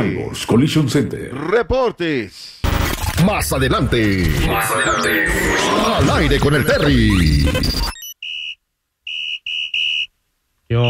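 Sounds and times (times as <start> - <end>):
speech: 0.2 - 2.6, 3.2 - 8.0
loud harsh noise burst: 2.6 - 8.1
shrill whistle blasts: 8.0 - 10.1.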